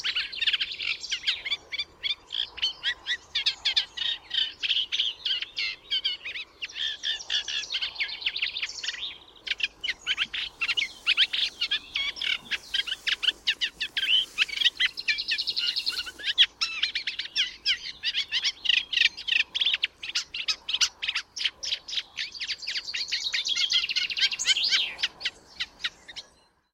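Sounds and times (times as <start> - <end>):
Eurasian reed warbler singing: 0.0 - 26.6.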